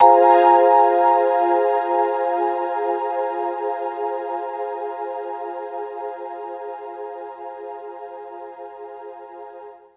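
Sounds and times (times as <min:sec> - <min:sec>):
electric piano loop: 0:00.0 - 0:02.6.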